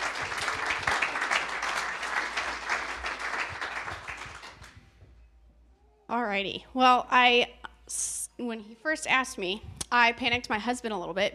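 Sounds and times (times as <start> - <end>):
church audience applause welcoming a speaker: 0.0 - 4.8
speech: 6.3 - 11.3.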